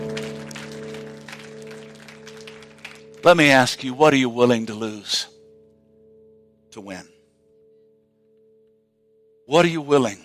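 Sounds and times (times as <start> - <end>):
church congregation clapping in praise: 0.0 - 4.0
steady sustained keyboard chords: 0.0 - 10.2
speech: 3.2 - 5.3, 6.8 - 7.2, 9.5 - 10.2.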